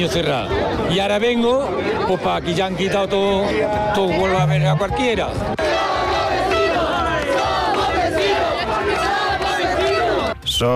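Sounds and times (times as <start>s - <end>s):
speech: 0.0s - 5.8s
celebrating crowd cheering and shouting: 0.0s - 10.4s
car horns blaring: 5.6s - 10.4s
applause: 7.0s - 9.6s.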